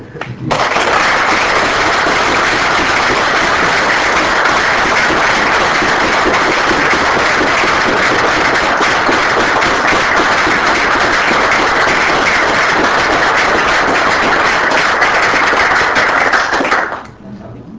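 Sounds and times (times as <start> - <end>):
audience applause: 0.2 - 17.1.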